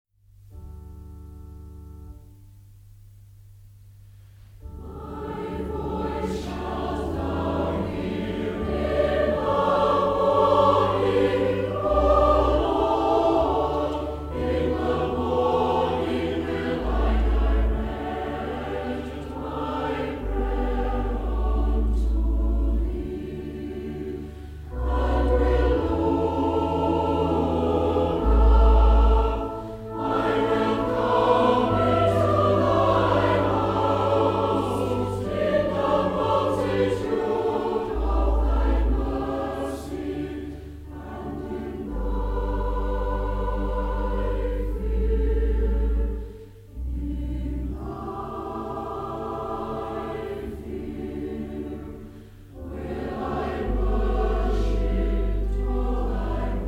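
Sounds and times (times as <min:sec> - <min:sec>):
choir singing: 0:04.6 - 0:56.6.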